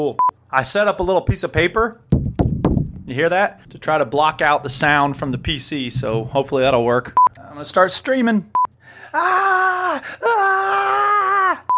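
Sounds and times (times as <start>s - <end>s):
speech: 0.0s - 10.7s
person screaming: 9.2s - 11.7s.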